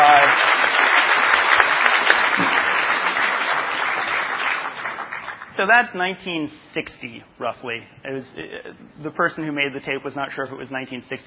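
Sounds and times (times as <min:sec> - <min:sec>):
audience applause: 0:00.0 - 0:05.5
speech: 0:05.6 - 0:11.2.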